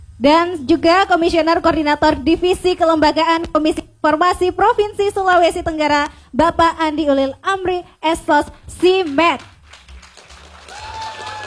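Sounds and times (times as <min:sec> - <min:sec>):
speech: 0:00.2 - 0:09.5
audience applause: 0:08.7 - 0:11.4.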